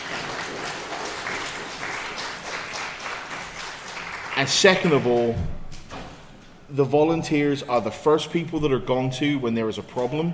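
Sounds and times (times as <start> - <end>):
audience applause: 0.0 - 5.2
speech: 4.4 - 5.6, 6.7 - 10.3.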